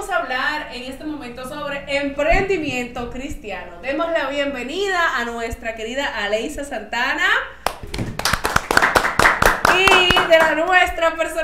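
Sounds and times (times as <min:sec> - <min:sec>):
speech: 0:00.3 - 0:07.6, 0:09.8 - 0:11.4
audience applause: 0:07.7 - 0:10.6.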